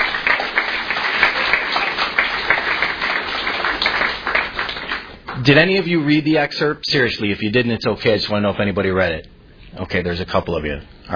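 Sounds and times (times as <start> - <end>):
audience applause: 0.0 - 5.5
speech: 5.4 - 11.1.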